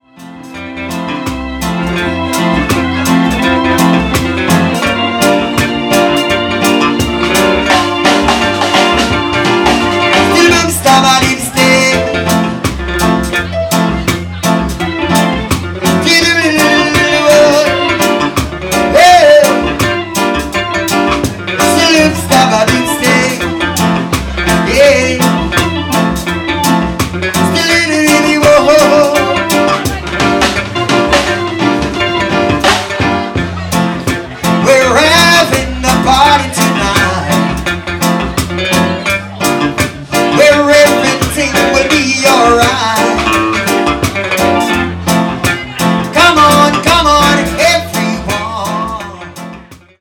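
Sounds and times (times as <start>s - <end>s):
reggae music: 0.0s - 49.9s.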